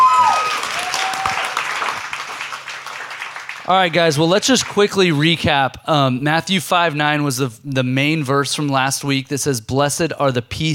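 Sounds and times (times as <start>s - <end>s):
audience round of applause: 0.0s - 4.9s
speech: 3.7s - 10.7s.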